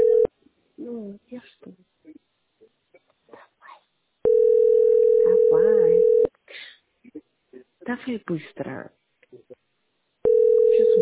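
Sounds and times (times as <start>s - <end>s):
telephone tone: 0.0s - 0.3s, 4.2s - 6.3s, 10.2s - 11.0s
speech: 8.0s - 9.0s.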